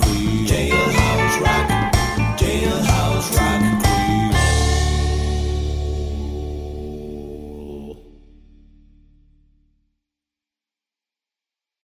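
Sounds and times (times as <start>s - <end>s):
cajun rock square dance music: 0.0s - 6.8s.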